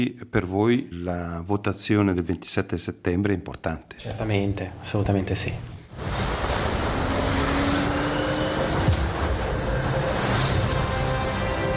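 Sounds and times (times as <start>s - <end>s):
speech: 0.0s - 6.2s
fighter jet flying overhead: 6.0s - 11.6s.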